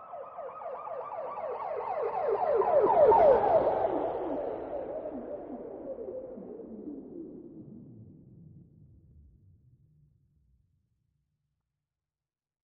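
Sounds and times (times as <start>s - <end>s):
police siren: 0.0s - 6.6s.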